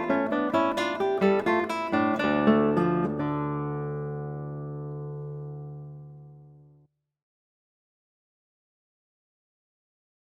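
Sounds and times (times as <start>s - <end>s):
gigue on eight-string guitar: 0.0s - 6.9s.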